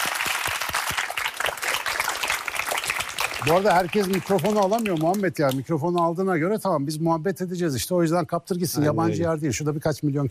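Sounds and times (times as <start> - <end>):
audience applause: 0.0 - 5.6
speech: 3.4 - 10.2.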